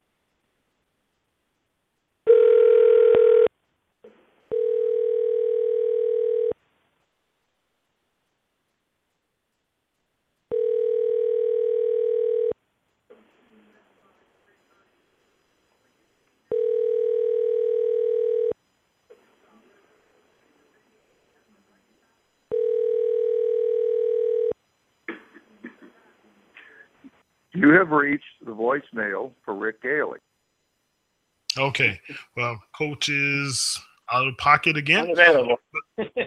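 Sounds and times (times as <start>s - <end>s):
telephone ringback tone on an outgoing call: 2.3s - 3.5s, 4.5s - 6.6s, 10.5s - 12.6s, 16.5s - 18.6s, 22.5s - 24.6s
short telephone tone: 4.5s - 6.6s, 10.5s - 12.6s, 16.5s - 18.6s, 22.5s - 24.6s
speech: 27.6s - 30.3s, 31.6s - 36.2s.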